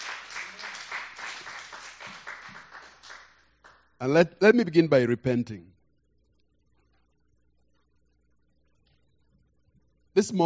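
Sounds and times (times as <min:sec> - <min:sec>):
audience hand clap applause: 0:00.0 - 0:03.8
speech: 0:04.0 - 0:05.7, 0:10.2 - 0:10.4.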